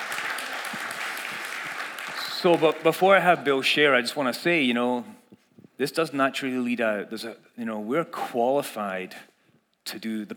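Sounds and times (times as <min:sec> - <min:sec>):
audience applause: 0:00.0 - 0:03.6
speech: 0:02.4 - 0:05.2, 0:05.8 - 0:10.3.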